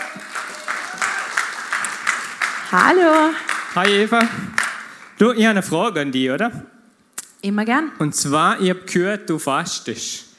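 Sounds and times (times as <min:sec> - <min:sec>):
audience applause: 0:00.0 - 0:05.4
speech: 0:02.7 - 0:04.6, 0:05.2 - 0:06.7, 0:07.4 - 0:10.3.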